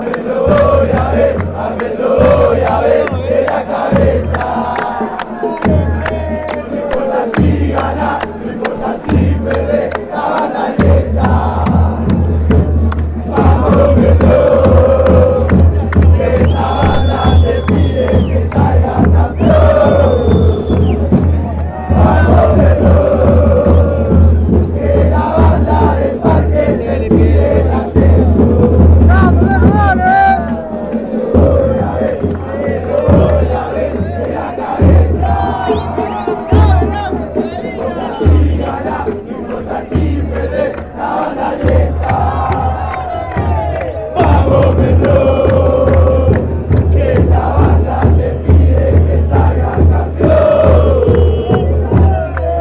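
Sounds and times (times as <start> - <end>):
chanting: 0.0 - 52.5.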